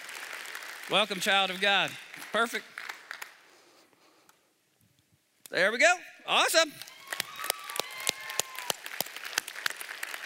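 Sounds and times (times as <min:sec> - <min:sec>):
hand claps at a church gathering: 0:00.0 - 0:03.5, 0:06.8 - 0:10.2
speech: 0:00.9 - 0:02.8, 0:05.5 - 0:06.9.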